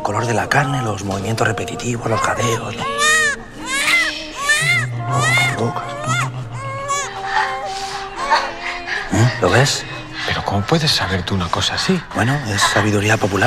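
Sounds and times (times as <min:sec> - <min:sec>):
speech: 0:00.1 - 0:03.1, 0:05.1 - 0:05.9, 0:09.2 - 0:13.4
baby crying: 0:01.8 - 0:08.8.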